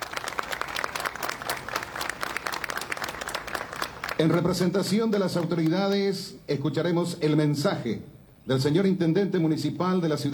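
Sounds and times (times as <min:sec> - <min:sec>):
audience applause: 0:00.0 - 0:04.7
speech: 0:04.2 - 0:10.3.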